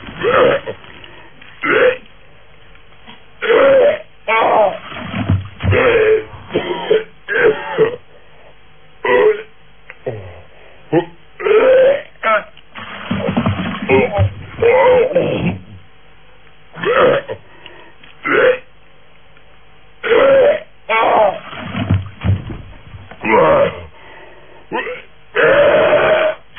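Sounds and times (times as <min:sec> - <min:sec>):
person vomiting: 0:00.1 - 0:00.9, 0:01.6 - 0:02.1, 0:03.4 - 0:04.9, 0:05.6 - 0:08.1, 0:09.1 - 0:12.6, 0:13.2 - 0:15.9, 0:16.8 - 0:17.4, 0:18.2 - 0:18.7, 0:20.0 - 0:21.5, 0:23.2 - 0:23.9, 0:24.7 - 0:26.4.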